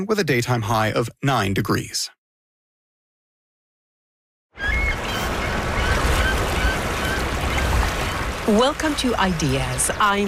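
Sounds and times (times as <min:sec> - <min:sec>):
speech: 0:00.0 - 0:02.2, 0:08.5 - 0:10.2
birds with buzzer-like calls: 0:04.6 - 0:10.2.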